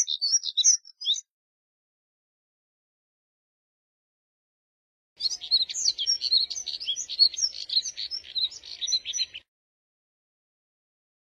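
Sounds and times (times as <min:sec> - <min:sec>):
Moussier's redstart twittering warble: 0:00.0 - 0:01.3, 0:05.2 - 0:09.5.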